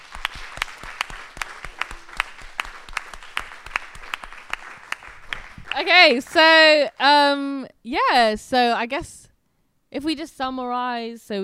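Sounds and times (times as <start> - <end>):
round of applause: 0.0 - 6.8
speech: 5.8 - 9.2, 9.9 - 11.4.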